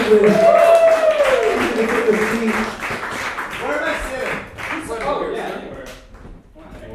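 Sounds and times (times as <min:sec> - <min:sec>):
person cheering: 0:00.0 - 0:02.4
crowd applauding: 0:00.0 - 0:06.0
speech: 0:00.1 - 0:00.7.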